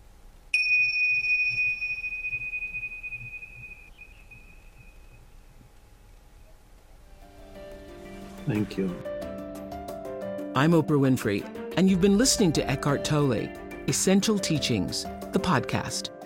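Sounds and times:
meditation bell ringing: 0.5s - 5.2s
speech: 8.5s - 9.1s, 10.6s - 16.2s.

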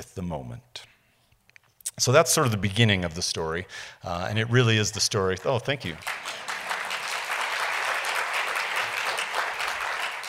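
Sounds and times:
speech: 0.0s - 0.8s, 2.0s - 6.5s
audience clapping: 5.8s - 10.2s.

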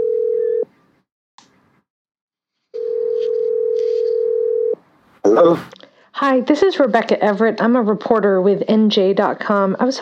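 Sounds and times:
telephone ringing tone during outgoing call: 0.0s - 0.7s, 2.8s - 4.8s
speech: 5.4s - 10.0s.

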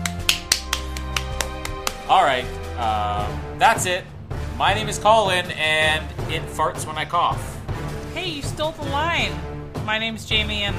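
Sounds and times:
brief clapping: 0.0s - 2.3s
speech: 2.2s - 7.5s, 8.2s - 10.7s.

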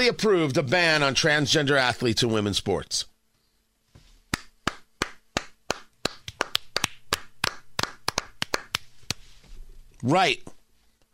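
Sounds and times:
speech: 0.0s - 3.1s, 10.0s - 10.6s
hands clapping: 4.3s - 9.2s.

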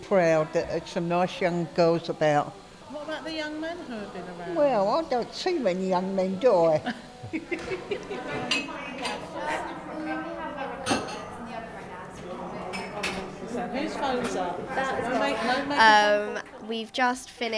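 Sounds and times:
murmur of voices: 0.0s - 17.5s
speech: 0.1s - 8.8s, 13.7s - 17.5s
laughter: 6.7s - 8.6s
utensils and dishes clinking as cake batter is scooped into paper cases: 7.1s - 9.7s, 10.7s - 11.5s, 12.2s - 14.4s.

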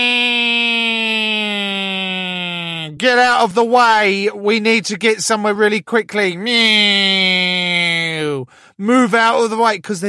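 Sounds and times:
voice imitating an ambulance siren: 0.0s - 3.0s
speech: 3.0s - 7.8s, 8.4s - 10.0s.

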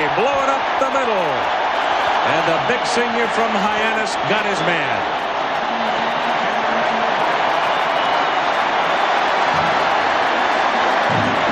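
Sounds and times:
stadium crowd cheering at football game: 0.0s - 11.5s
speech: 0.2s - 5.4s.

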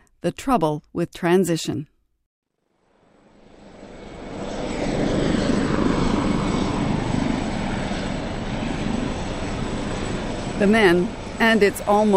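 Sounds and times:
speech: 0.2s - 1.9s, 10.6s - 12.1s
helicopter flying near an airfield on the outskirts of Aberdeen: 2.6s - 12.1s.

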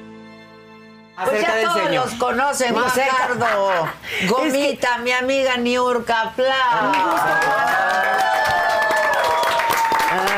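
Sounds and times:
speech: 1.2s - 8.3s
audience applause and cheering: 6.8s - 10.3s.

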